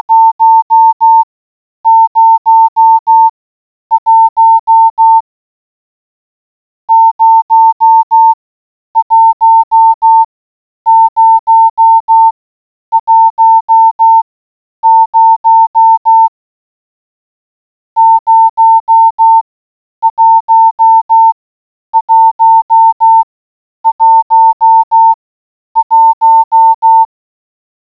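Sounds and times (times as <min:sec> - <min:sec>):
morse code beeps: 0:00.1 - 0:01.2, 0:01.9 - 0:03.3, 0:03.9 - 0:05.2, 0:06.9 - 0:08.4, 0:09.0 - 0:10.3, 0:10.9 - 0:14.2, 0:14.8 - 0:16.3, 0:18.0 - 0:19.4, 0:20.0 - 0:21.4, 0:22.0 - 0:25.2, 0:25.8 - 0:27.1.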